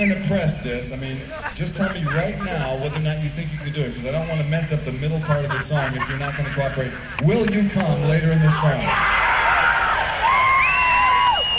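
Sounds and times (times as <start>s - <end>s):
laughter: 0.0s - 9.0s
speech: 0.0s - 9.2s
concert audience cheering and shouting at a 1974 show in San Carlos, California: 8.0s - 11.5s
sustained high whistle-like whoop: 8.9s - 11.5s.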